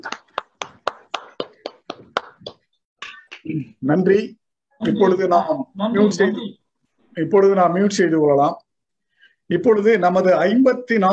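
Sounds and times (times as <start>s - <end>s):
applause from unmuted online participants: 0.0s - 2.7s
speech: 3.5s - 6.6s, 7.2s - 8.6s, 9.5s - 11.1s.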